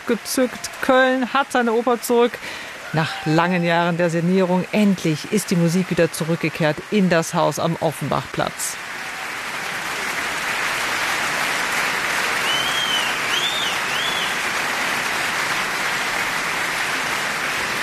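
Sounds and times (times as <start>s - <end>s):
opera audience applauding: 0.0s - 17.8s
speech: 0.1s - 8.9s
whistles and cheers: 12.2s - 14.5s.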